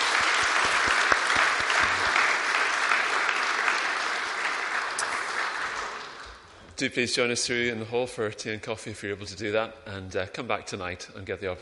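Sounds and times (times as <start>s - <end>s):
round of applause: 0.0s - 6.5s
speech: 6.8s - 11.5s.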